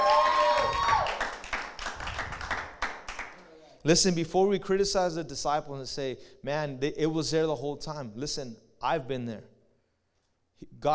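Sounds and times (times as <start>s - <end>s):
audience clapping: 0.0s - 3.5s
speech: 3.8s - 9.5s, 10.6s - 10.9s.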